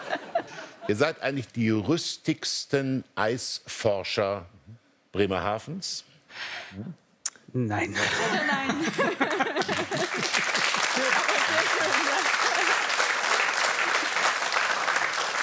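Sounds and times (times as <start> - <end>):
laughter: 0.0 - 1.0, 7.8 - 13.0
speech: 0.9 - 4.6, 5.2 - 12.1
audience applause: 9.0 - 15.4.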